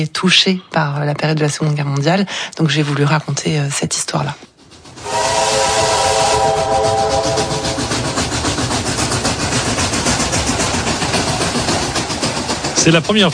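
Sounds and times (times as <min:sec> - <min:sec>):
speech: 0:00.0 - 0:04.5, 0:12.8 - 0:13.3
steam train chuffing: 0:03.7 - 0:13.3
steam train whistle: 0:05.0 - 0:08.2.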